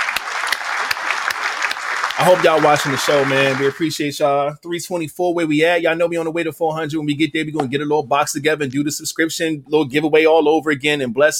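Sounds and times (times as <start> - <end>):
canned applause effect: 0.0 - 4.1
speech: 2.2 - 11.3.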